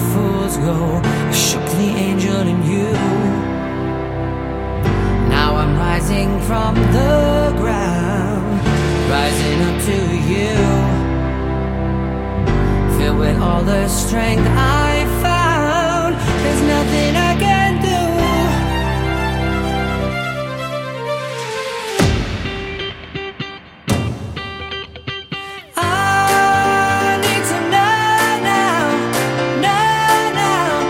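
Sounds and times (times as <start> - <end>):
rock pop band playing: 0.0 - 30.8.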